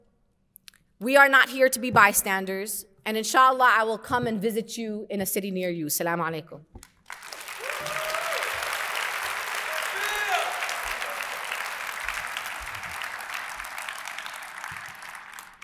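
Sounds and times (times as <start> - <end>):
speech: 1.0 - 7.2
audience applause: 7.0 - 15.6
faint cheers: 7.5 - 15.6.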